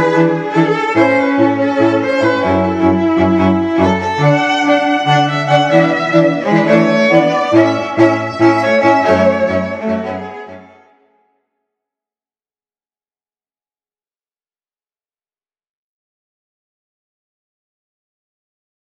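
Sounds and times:
string quartet: 0.0 - 11.0.

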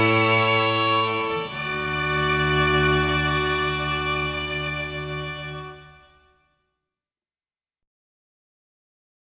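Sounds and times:
string quartet playing: 0.0 - 6.4.

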